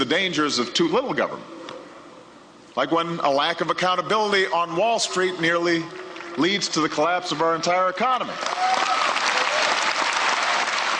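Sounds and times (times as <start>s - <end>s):
speech: 0.0s - 1.7s, 2.8s - 8.8s
audience applause during a political speech: 8.4s - 10.9s.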